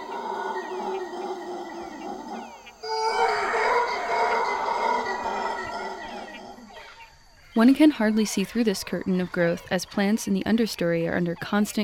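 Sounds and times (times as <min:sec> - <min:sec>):
chorus of tropical rainforest animal calls: 0:00.0 - 0:10.6
speech: 0:07.6 - 0:11.8.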